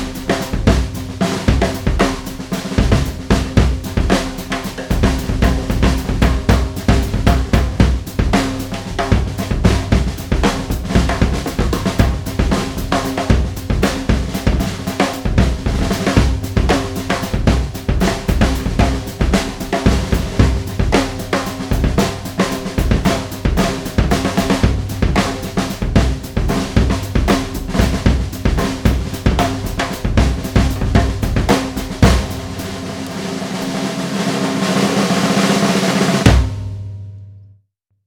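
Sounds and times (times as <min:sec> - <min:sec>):
drums: 0:00.0 - 0:37.3.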